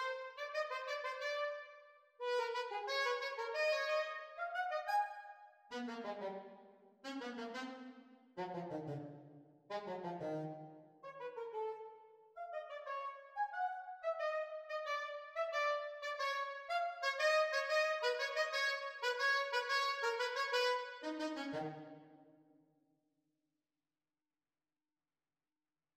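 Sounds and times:
saxophone duet playalong: 0:00.0 - 0:05.1, 0:05.7 - 0:09.0, 0:09.7 - 0:11.8, 0:12.4 - 0:22.0.

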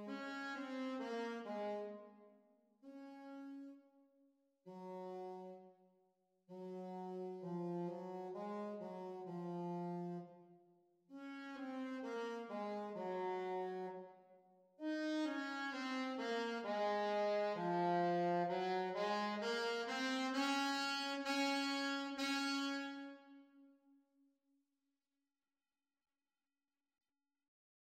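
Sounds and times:
saxophone duet playalong: 0:00.0 - 0:02.1, 0:02.9 - 0:03.8, 0:04.7 - 0:05.6, 0:06.5 - 0:10.4, 0:11.2 - 0:14.1, 0:14.8 - 0:23.5.

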